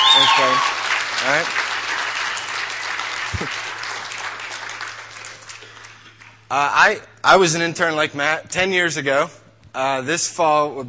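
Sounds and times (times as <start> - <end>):
audience applause: 0.0 - 6.4
speech: 0.2 - 1.6, 6.5 - 10.8.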